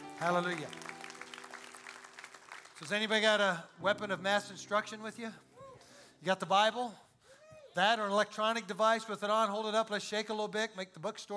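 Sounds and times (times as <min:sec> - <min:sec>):
hand clapping: 0:00.0 - 0:03.0
speech: 0:00.2 - 0:00.9, 0:02.8 - 0:05.5, 0:06.2 - 0:07.0, 0:07.8 - 0:11.3.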